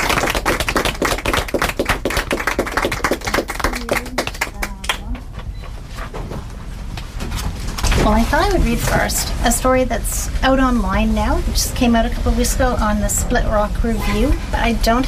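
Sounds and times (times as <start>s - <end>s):
audience applause: 0.0s - 5.4s
speech: 8.1s - 15.0s.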